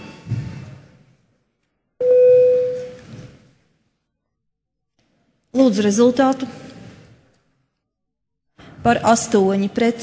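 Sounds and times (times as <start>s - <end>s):
parliament voting bell electronic tone: 2.0s - 3.0s
speech: 5.6s - 6.6s, 8.8s - 10.0s.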